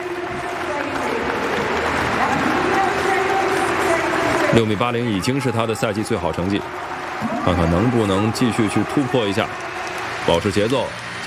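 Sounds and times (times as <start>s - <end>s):
crowd clapping a rhythm for an athlete: 0.0s - 11.2s
speech: 4.5s - 9.7s, 10.3s - 11.2s.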